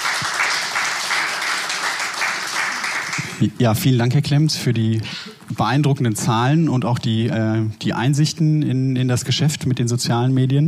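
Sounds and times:
audience applauding: 0.0 - 3.4
speech: 3.4 - 10.6.

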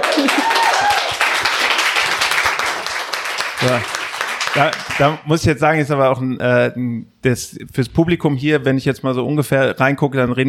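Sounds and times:
audience applause: 0.0 - 5.2
speech: 3.6 - 4.0, 4.6 - 10.4.

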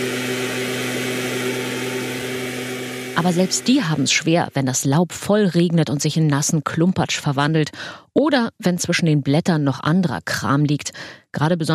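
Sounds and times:
backpack leaf blowers running: 0.0 - 4.4
speech: 3.2 - 11.7.

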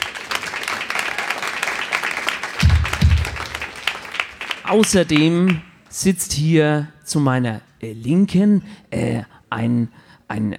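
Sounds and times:
audience applause: 0.0 - 5.6
speech: 4.7 - 10.5.

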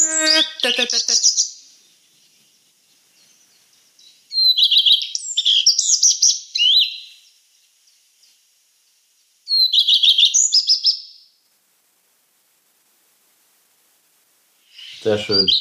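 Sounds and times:
songbird singing high-pitched phrases of quick chirps and trills: 0.0 - 11.4, 14.7 - 15.5
speech: 0.2 - 1.4, 15.0 - 15.5.

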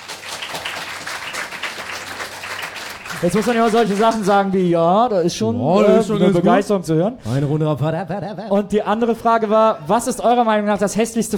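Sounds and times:
applause: 0.0 - 4.6
speech: 3.2 - 11.3.

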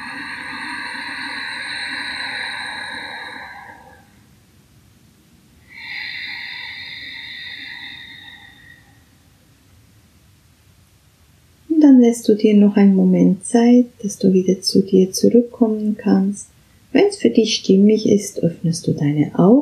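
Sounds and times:
Ujjayi breathing during a guided meditation: 0.0 - 4.2, 5.7 - 9.2
speech: 12.0 - 19.6.

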